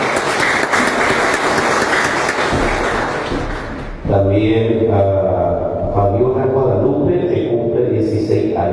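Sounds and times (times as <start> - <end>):
audience applause: 0.0 - 4.0
speech: 4.2 - 8.7.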